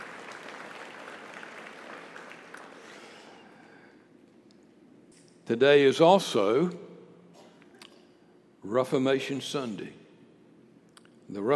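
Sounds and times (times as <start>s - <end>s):
audience applauding: 0.0s - 3.6s
speech: 5.5s - 6.9s, 8.7s - 10.0s, 11.3s - 11.5s.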